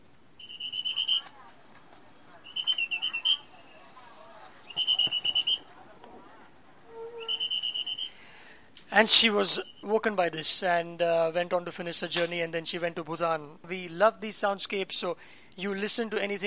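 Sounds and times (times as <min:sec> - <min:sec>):
bus conductor blowing noisy whistle: 0:00.4 - 0:01.4, 0:02.4 - 0:03.8, 0:04.7 - 0:05.7, 0:06.9 - 0:08.2, 0:09.5 - 0:09.9
speech: 0:09.0 - 0:16.4.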